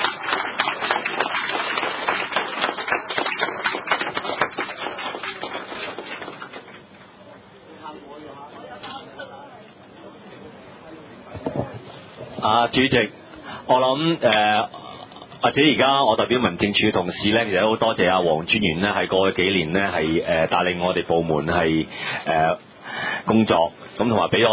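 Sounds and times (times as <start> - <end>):
applause: 0.0 - 7.4
speech: 12.6 - 14.8, 15.4 - 24.5.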